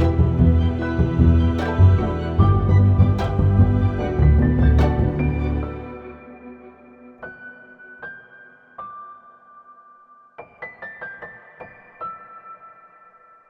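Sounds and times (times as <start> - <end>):
orchestral music: 0.0 - 7.2.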